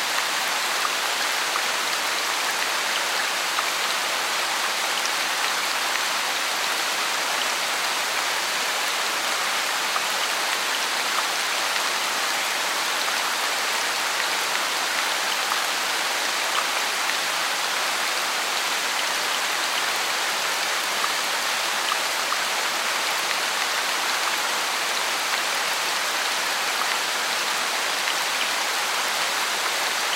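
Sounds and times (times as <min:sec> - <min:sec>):
heavy rain in a forest: 0:00.0 - 0:30.1.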